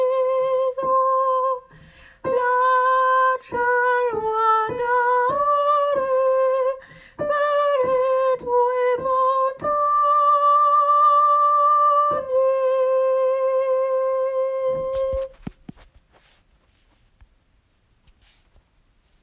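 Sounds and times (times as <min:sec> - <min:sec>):
tenor singing: 0:00.0 - 0:15.3.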